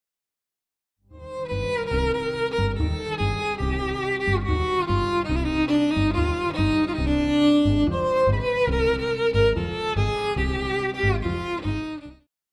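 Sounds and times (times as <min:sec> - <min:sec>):
Irish fiddle playing a jig: 0:01.2 - 0:12.3.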